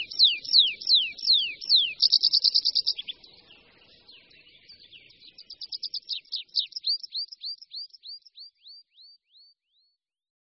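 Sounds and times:
tree pipit singing sharp high downslurred notes: 0.0 - 9.2.

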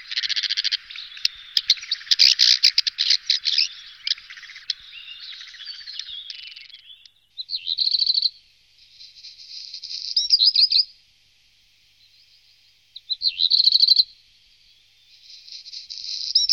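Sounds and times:
black redstart calling: 0.0 - 10.8, 13.0 - 14.1.

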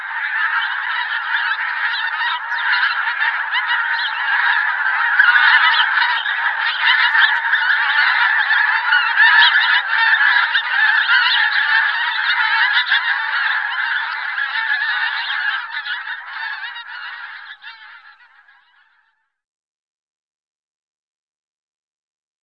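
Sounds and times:
pink-footed goose calls, double and triple honks: 0.0 - 19.1.

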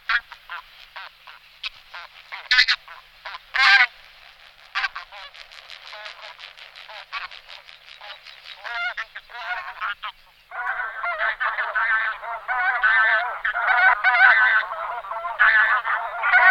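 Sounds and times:
flock of bean geese honking: 0.0 - 16.4.

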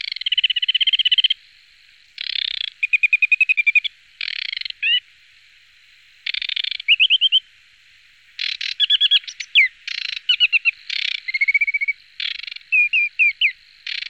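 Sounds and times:
aquatic warbler song: 0.0 - 1.4, 2.2 - 5.0, 6.2 - 7.5, 8.4 - 14.0.

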